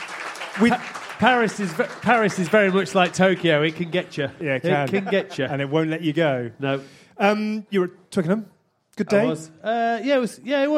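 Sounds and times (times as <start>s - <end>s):
audience applause: 0.0s - 4.4s
speech: 0.6s - 10.7s
laughter: 4.5s - 6.0s.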